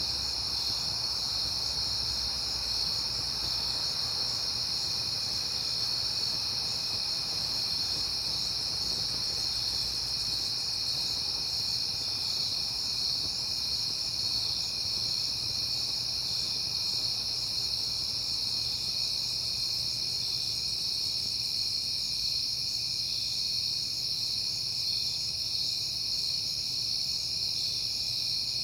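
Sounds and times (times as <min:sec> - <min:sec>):
crickets trilling: 0:00.0 - 0:28.6.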